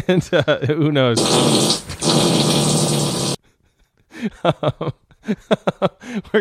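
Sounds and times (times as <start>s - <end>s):
speech: 0.1s - 2.7s, 4.2s - 6.3s
aggressive fart: 1.2s - 3.4s.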